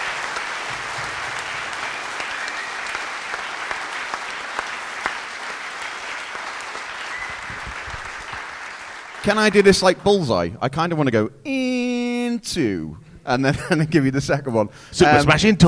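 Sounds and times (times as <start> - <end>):
sustained applause from a sizable audience: 0.0 - 10.0
speech: 9.2 - 11.7, 12.4 - 15.6.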